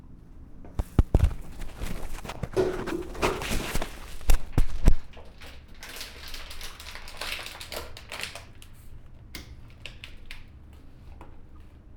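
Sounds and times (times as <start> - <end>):
kitchen experiment field recordings: 0.7 - 8.5.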